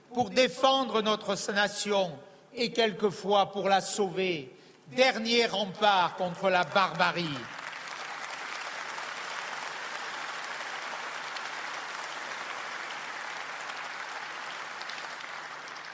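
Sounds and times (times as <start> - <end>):
speech: 0.2 - 7.6
audience applause: 6.6 - 15.9.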